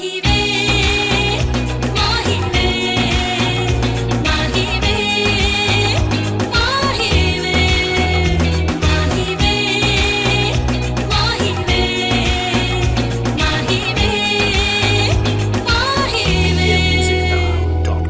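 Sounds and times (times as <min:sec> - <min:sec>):
Bollywood reggaeton music loop: 0:00.2 - 0:18.0.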